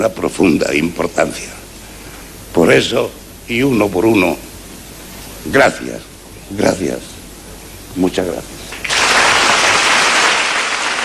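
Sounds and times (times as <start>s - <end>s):
speech: 0.0s - 1.6s, 2.6s - 4.5s, 5.4s - 7.1s, 7.9s - 8.6s
thunderous applause at the end of a speech: 8.8s - 11.0s.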